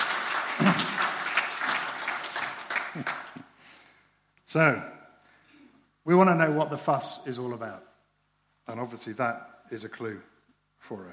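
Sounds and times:
audience applause: 0.0 - 3.5
speech: 3.0 - 3.2, 4.5 - 5.0, 6.1 - 7.9, 8.7 - 11.1.

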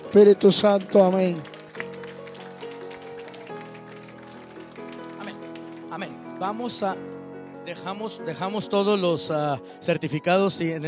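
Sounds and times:
audience applauding loudly: 0.0 - 7.0
sustained keyboard chords: 0.0 - 10.8
speech: 0.1 - 1.5, 6.0 - 10.8.

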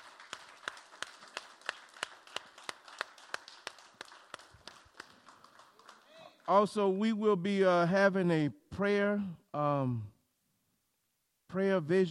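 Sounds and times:
audience applause: 0.0 - 6.5
speech: 6.5 - 10.2, 11.5 - 12.1.

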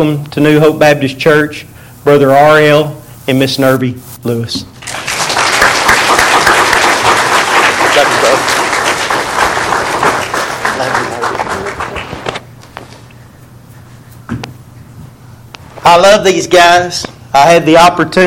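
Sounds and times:
speech: 0.0 - 4.7, 15.9 - 18.2
audience clapping: 4.8 - 12.4.

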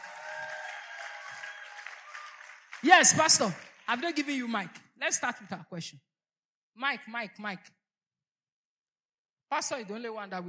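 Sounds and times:
church congregation clapping on the pastor's request: 0.0 - 5.5
speech: 2.8 - 6.1, 6.8 - 7.8, 9.5 - 10.4.

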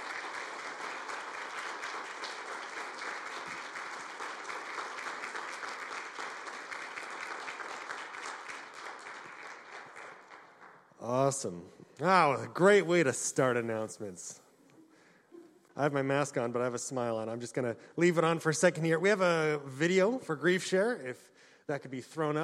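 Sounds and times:
audience applause: 0.0 - 10.8
speech: 11.1 - 14.4, 15.8 - 22.4.

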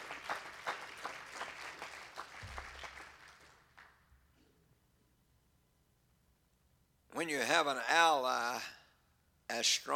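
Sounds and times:
audience clapping hands: 0.0 - 4.1
speech: 7.2 - 8.8, 9.6 - 9.9.

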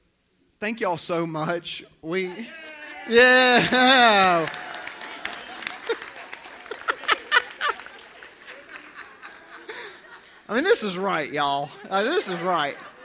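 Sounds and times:
speech: 0.6 - 4.7, 10.5 - 12.9
audience cheering: 2.3 - 9.8
laughter: 2.3 - 13.0
audience applause: 3.1 - 10.3.

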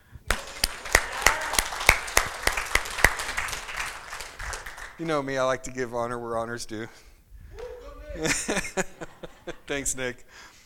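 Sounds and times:
audience hand clap applause: 0.0 - 5.4
speech: 5.0 - 7.1, 8.1 - 10.5
laughter: 7.6 - 10.2.

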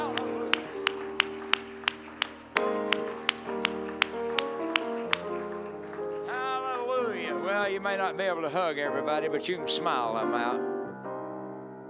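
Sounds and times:
congregation clapping hands during church worship: 0.0 - 7.5
church worship music: 0.0 - 11.8
speech: 7.8 - 10.7.

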